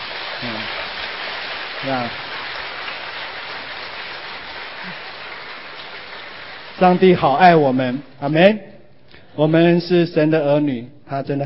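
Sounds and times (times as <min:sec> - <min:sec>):
audience applause: 0:00.0 - 0:07.2
speech: 0:01.8 - 0:02.3, 0:06.8 - 0:08.7, 0:09.4 - 0:11.4.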